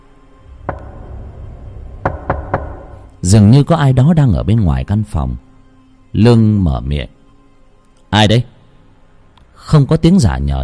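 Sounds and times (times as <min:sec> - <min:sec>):
low steady rumble: 0:00.0 - 0:03.6
sharp knocks on a door on a cold night: 0:00.6 - 0:03.1
speech: 0:03.2 - 0:05.5, 0:06.1 - 0:07.2, 0:08.1 - 0:08.5, 0:09.6 - 0:10.6.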